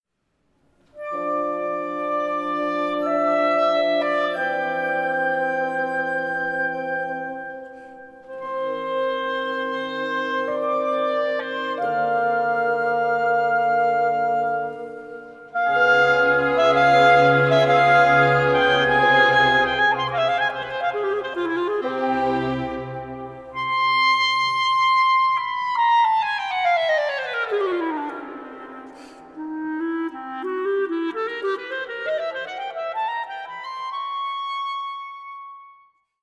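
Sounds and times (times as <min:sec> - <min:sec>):
solo clarinet: 0:00.8 - 0:36.2.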